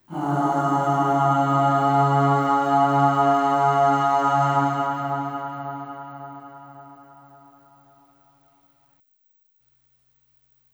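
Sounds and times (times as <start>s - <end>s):
long sung aah at C-sharp 2 with long reverb: 0.0s - 8.1s.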